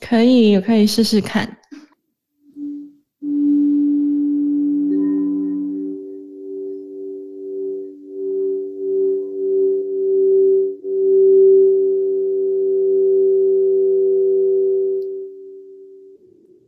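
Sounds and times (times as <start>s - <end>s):
speech: 0.1s - 1.6s
crystal singing bowl tone: 2.6s - 16.6s.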